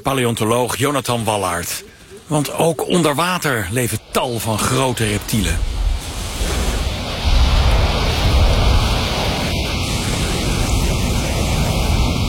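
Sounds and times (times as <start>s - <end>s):
speech: 0.0s - 5.8s
strong warm wind blowing at the coast: 3.9s - 12.2s.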